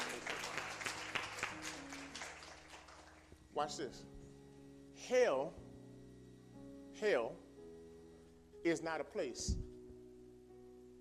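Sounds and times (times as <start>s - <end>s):
audience applause: 0.0s - 3.3s
speech: 3.6s - 4.2s, 5.0s - 5.6s, 7.0s - 7.5s, 8.6s - 9.7s.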